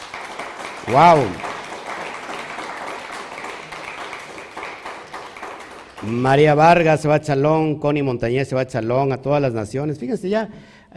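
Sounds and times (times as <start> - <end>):
audience applause: 0.0 - 6.6
speech: 0.9 - 1.5, 6.0 - 10.9.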